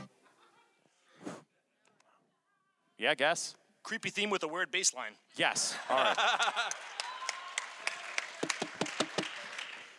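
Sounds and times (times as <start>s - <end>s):
laughter: 0.2s - 1.0s, 5.7s - 7.0s
speech: 3.0s - 7.0s
crowd applause from the video game Halo: 5.9s - 9.9s.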